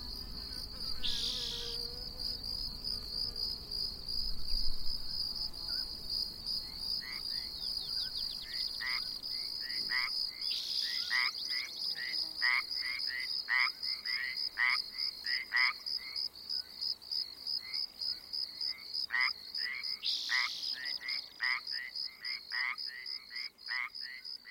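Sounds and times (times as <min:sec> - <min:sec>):
frogs croaking: 0:00.0 - 0:01.8, 0:06.6 - 0:16.3, 0:18.6 - 0:24.5
shrill insect drone: 0:00.0 - 0:24.5.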